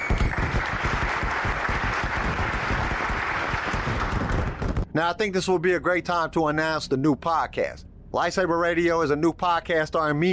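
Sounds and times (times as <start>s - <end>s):
round of applause from a group: 0.0s - 4.8s
speech: 5.0s - 10.3s.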